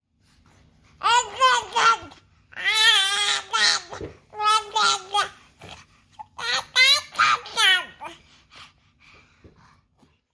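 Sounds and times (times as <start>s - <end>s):
baby talk ringtone: 1.0s - 8.2s.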